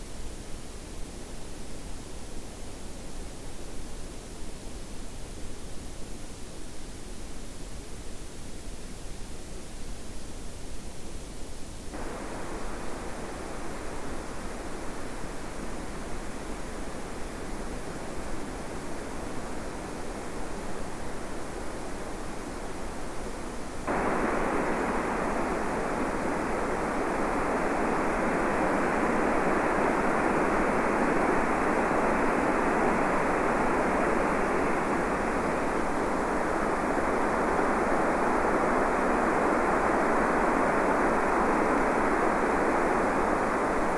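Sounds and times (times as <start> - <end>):
EMFISIS waveform receiver audio: 12.0 - 43.9.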